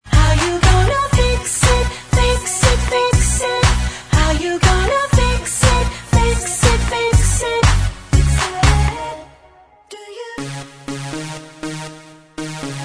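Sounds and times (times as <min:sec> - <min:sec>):
backing vocals: 0:00.0 - 0:10.6.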